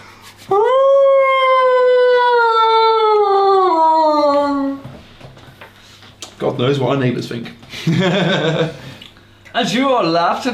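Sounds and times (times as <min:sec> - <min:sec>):
wolf pack howling: 0:00.5 - 0:04.8
speech: 0:06.6 - 0:08.8, 0:09.6 - 0:10.5
laughter: 0:07.7 - 0:09.0.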